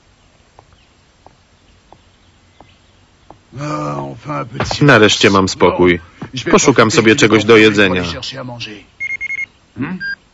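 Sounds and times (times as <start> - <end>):
speech: 3.5 - 8.9, 9.8 - 10.1
electronic alarm beeping: 9.0 - 10.2.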